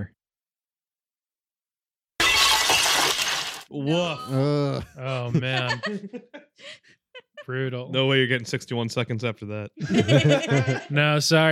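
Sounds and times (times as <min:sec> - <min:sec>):
ceramic breaking sound effect: 0:02.2 - 0:03.7
speech: 0:03.7 - 0:11.5
laughter: 0:03.9 - 0:08.1, 0:09.8 - 0:11.2.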